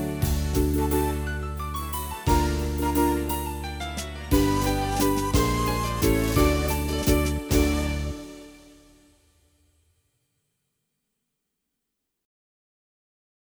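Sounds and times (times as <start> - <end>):
Korg Pa300 Viennese waltz style accompaniment: 0.0 - 8.8.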